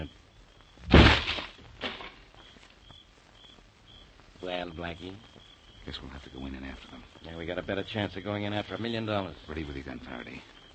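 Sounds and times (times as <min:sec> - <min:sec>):
door being kicked open: 0:00.9 - 0:02.1
speech: 0:04.7 - 0:10.7.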